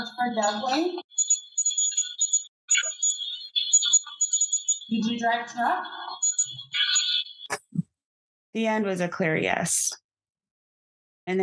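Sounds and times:
temperature alarm chirping: 0.0 - 7.6
speech: 0.2 - 1.1, 4.9 - 6.0, 8.5 - 10.0, 11.2 - 11.4.

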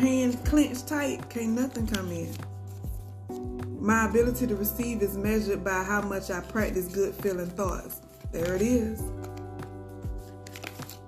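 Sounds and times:
speech: 0.0 - 2.5, 3.3 - 9.1
playing cards flying out of a deck: 8.4 - 11.0.

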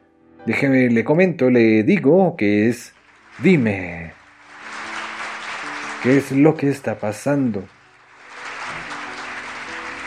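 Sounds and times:
speech: 0.5 - 4.2, 6.0 - 7.8
audience applause: 2.6 - 10.0.

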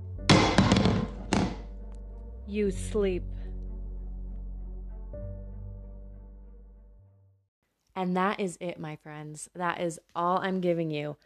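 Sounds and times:
heavy metal cauldron crashing onto the floor: 0.3 - 1.6
speech: 2.5 - 3.4, 8.0 - 11.2.

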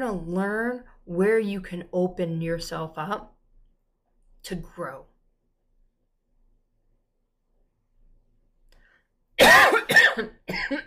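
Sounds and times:
speech: 0.0 - 3.4, 4.4 - 5.1, 9.4 - 10.8
person clearing throat: 9.4 - 10.8.

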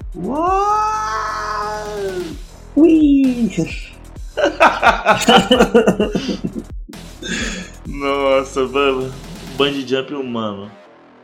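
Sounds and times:
speech: 0.1 - 0.8, 2.8 - 4.0, 4.8 - 6.7, 8.0 - 10.8
cat meowing: 0.2 - 2.2
laughter: 4.4 - 7.6.

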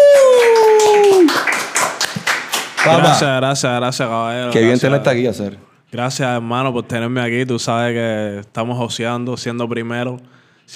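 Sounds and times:
falling vocal whoop: 0.0 - 1.3
small group applauding a guest: 0.0 - 3.3
speech: 2.9 - 10.7.

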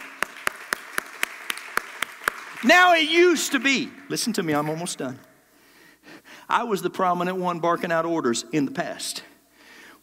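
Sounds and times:
steady hand clapping: 0.0 - 5.0
faint hiss: 0.0 - 10.0
speech: 2.6 - 5.3, 6.5 - 9.3.

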